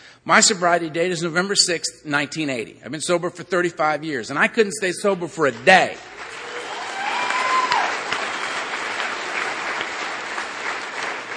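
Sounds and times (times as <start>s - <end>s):
speech: 0.2s - 6.2s
audience clapping: 5.5s - 11.3s.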